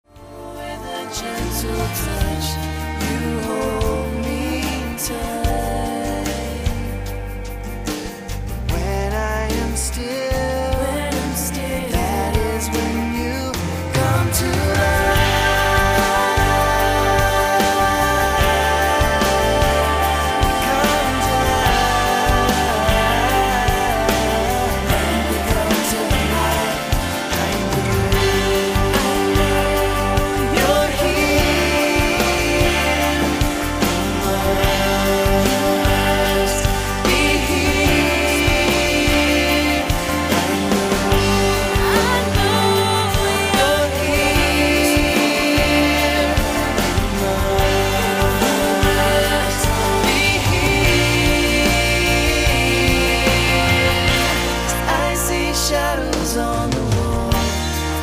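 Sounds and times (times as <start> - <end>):
two voices singing: 0.0 - 58.0.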